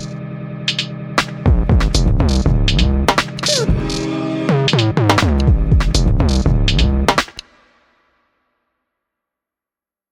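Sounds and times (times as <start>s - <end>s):
drum kit medley at 120 BPM: 0.7s - 7.8s.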